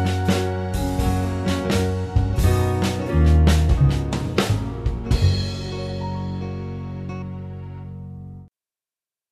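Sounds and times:
band playing: 0.0s - 7.5s.

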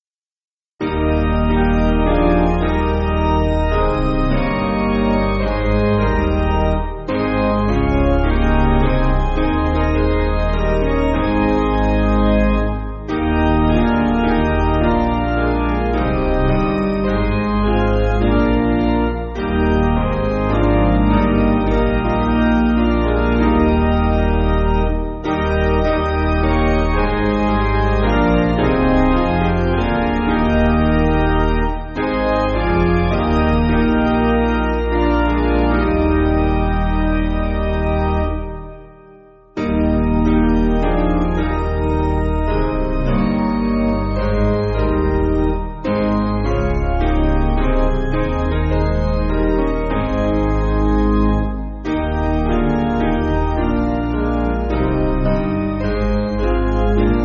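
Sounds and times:
piano backing music for churches: 0.8s - 57.2s.

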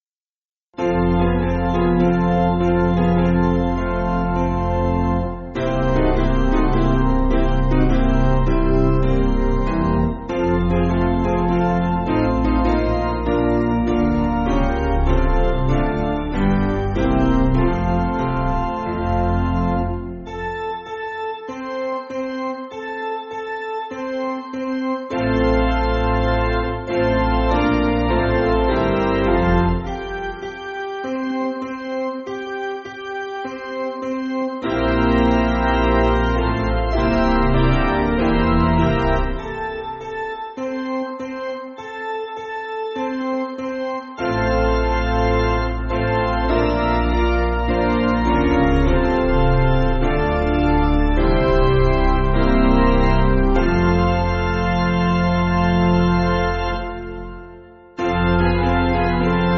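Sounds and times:
piano backing music: 0.8s - 59.5s.

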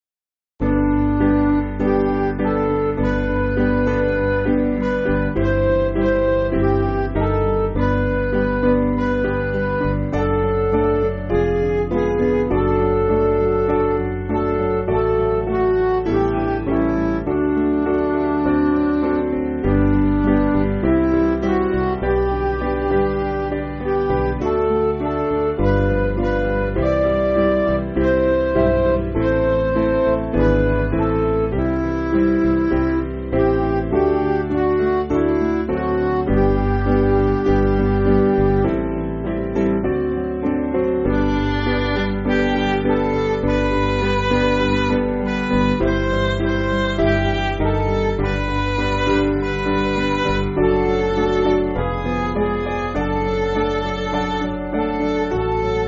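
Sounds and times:
MIDI backing music: 0.6s - 55.8s.

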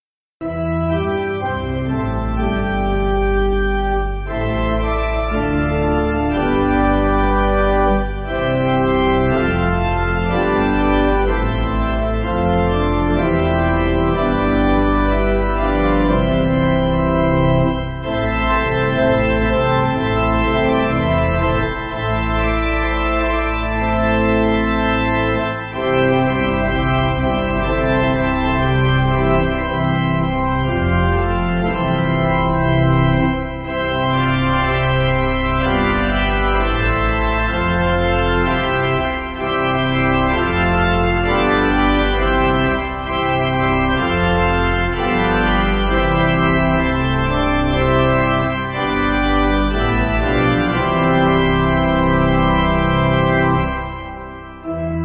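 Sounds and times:
pipe organ backing music for churches: 0.4s - 55.0s.

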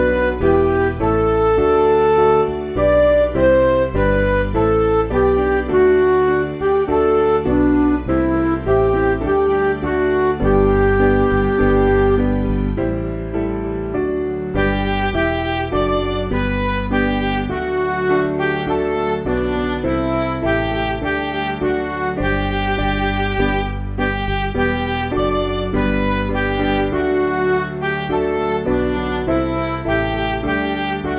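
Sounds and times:
midi music: 0.0s - 31.1s.

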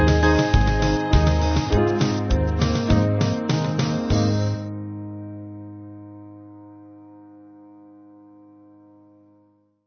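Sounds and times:
church band backing music: 0.0s - 4.6s.

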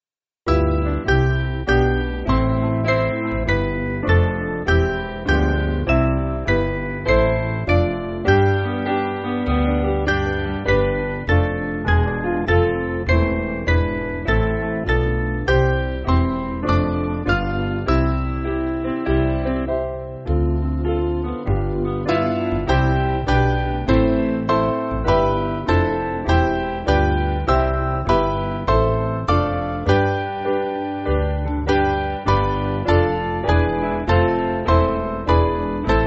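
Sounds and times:
piano backing music for churches: 0.5s - 36.0s.

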